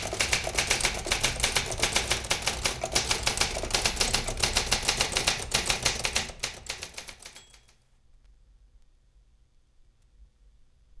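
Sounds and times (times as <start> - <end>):
standard typewriter typing: 0.0 - 7.8.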